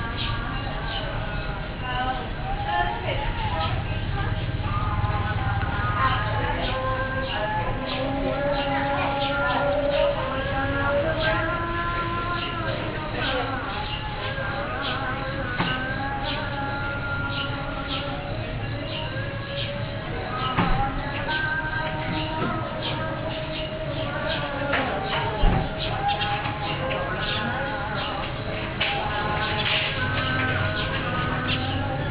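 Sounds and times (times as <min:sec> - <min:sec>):
birds calling: 0:00.0 - 0:32.0.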